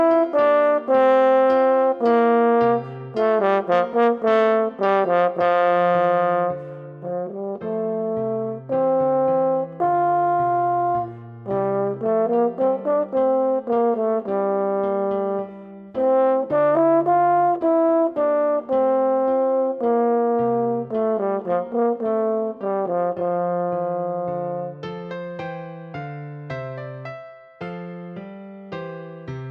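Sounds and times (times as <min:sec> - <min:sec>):
horn march solo: 0:00.0 - 0:24.8
piano accompaniment: 0:00.0 - 0:29.4.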